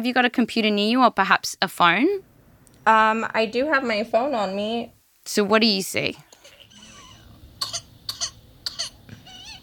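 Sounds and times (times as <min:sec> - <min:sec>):
speech: 0:00.0 - 0:06.3
baby coughing with whooping cough: 0:06.4 - 0:09.6.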